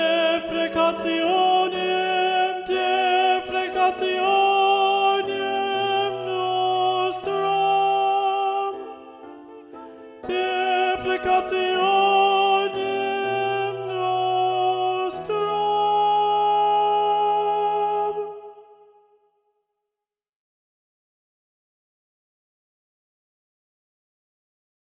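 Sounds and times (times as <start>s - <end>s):
alto voice: 0.0s - 19.0s.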